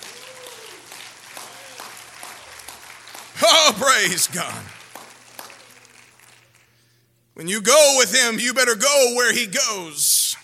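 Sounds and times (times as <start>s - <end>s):
audience clapping hands: 0.0s - 7.0s
speech: 3.4s - 4.8s, 7.4s - 10.4s.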